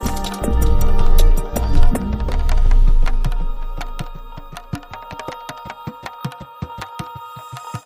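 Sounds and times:
short link sting: 0.2 - 5.5.

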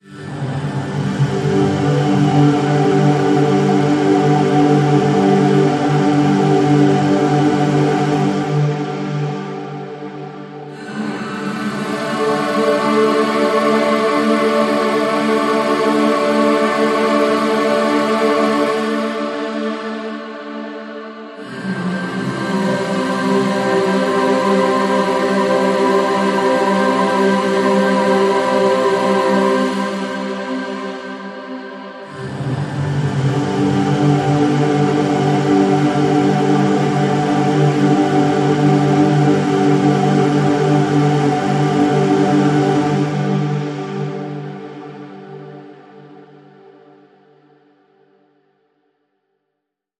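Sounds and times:
curious ethereal choir: 0.0 - 48.3.

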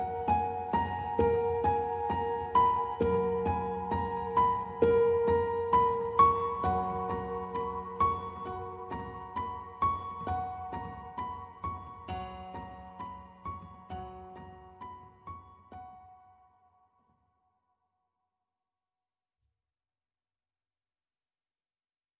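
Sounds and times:
solo piano: 0.0 - 16.8.

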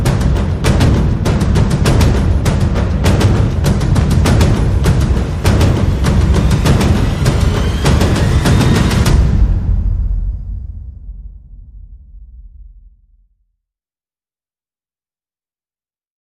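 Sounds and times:
percussion: 0.0 - 13.0
sound effects: 1.8 - 12.2.

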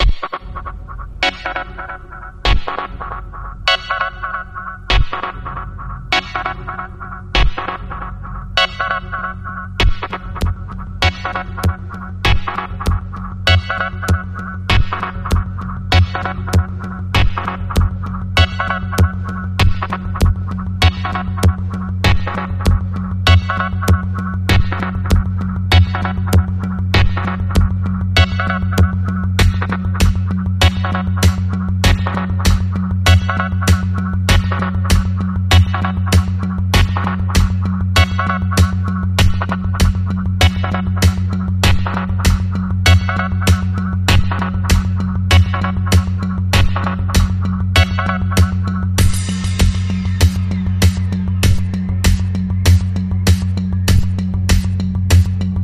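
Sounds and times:
suspense music: 0.0 - 55.6.

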